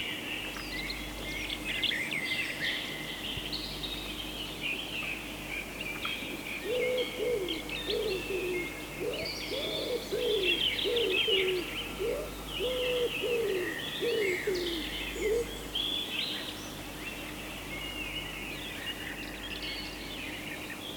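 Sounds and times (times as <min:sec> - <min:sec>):
songbirds twittering: 0:00.0 - 0:20.9
wood pigeon cooing: 0:06.7 - 0:15.6.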